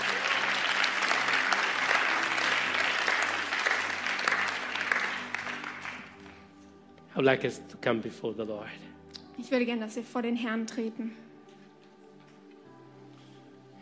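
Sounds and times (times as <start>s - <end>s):
audience applause: 0.0s - 6.5s
speech: 7.2s - 11.3s.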